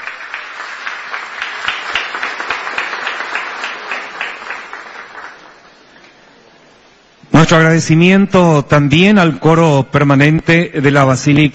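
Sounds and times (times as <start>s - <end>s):
audience applause: 0.0s - 5.8s
speech: 7.4s - 11.5s.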